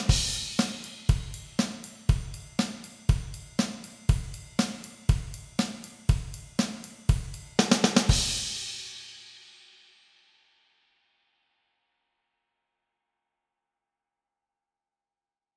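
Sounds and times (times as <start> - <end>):
practice backing track: 0.0 - 8.5.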